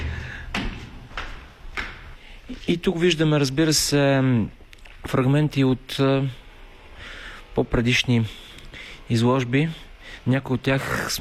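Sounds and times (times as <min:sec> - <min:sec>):
footsteps walking through studio: 0:00.0 - 0:02.8
speech: 0:02.5 - 0:06.4, 0:07.6 - 0:08.4, 0:09.1 - 0:11.1.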